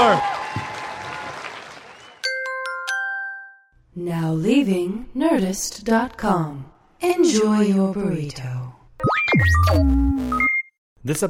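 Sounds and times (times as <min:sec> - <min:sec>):
audience round of applause: 0:00.0 - 0:02.2
speech: 0:04.0 - 0:11.2.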